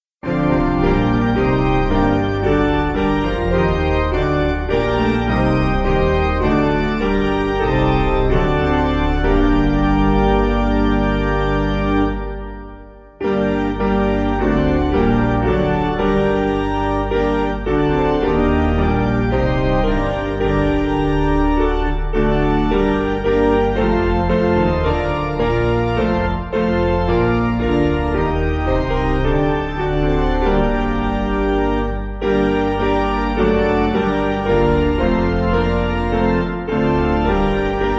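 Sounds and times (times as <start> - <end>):
piano: 0.0 - 37.9.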